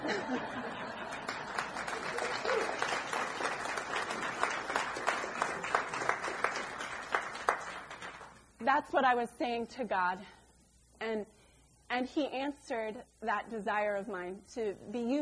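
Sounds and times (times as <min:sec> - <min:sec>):
laughter: 0:00.0 - 0:02.9
audience clapping: 0:00.9 - 0:08.4
speech: 0:08.7 - 0:10.4, 0:11.0 - 0:15.2.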